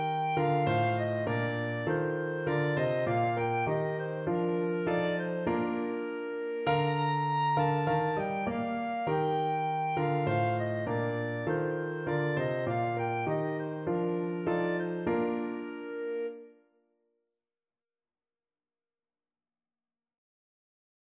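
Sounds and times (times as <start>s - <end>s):
clarinet: 0.0s - 16.6s.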